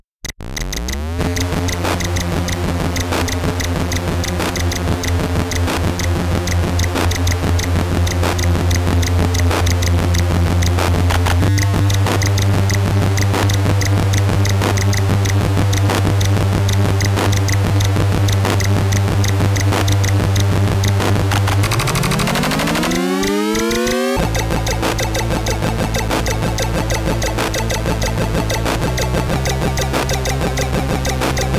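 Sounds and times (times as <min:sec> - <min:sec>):
buzzy C64 SID chip music: 0:00.6 - 0:31.5.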